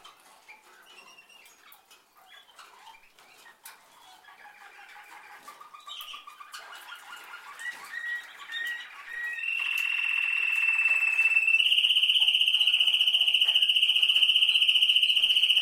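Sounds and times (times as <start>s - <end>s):
canary singing: 0.6s - 15.5s.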